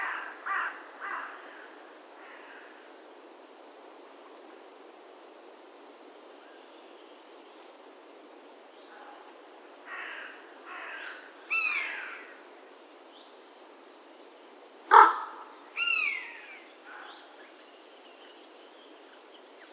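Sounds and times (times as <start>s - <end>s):
carrion crow Corvus corone giving harsh rasping caws: 0.0s - 1.4s, 9.9s - 12.3s, 14.9s - 15.5s.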